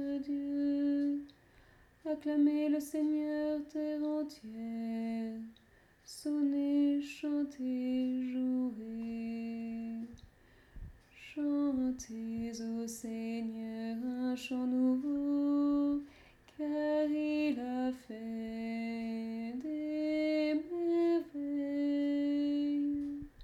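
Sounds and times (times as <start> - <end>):
tenor singing a psalm: 0.0 - 23.4.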